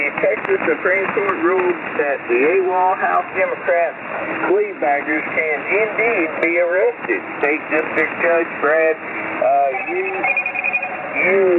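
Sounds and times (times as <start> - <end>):
speech: 0.5 - 10.5, 11.2 - 11.5
phone ringing with a Google service alert: 9.6 - 11.5.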